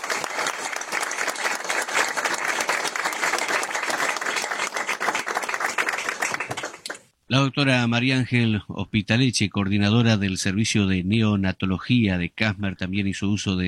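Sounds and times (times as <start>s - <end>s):
audience applause: 0.0s - 7.1s
speech: 7.3s - 13.6s.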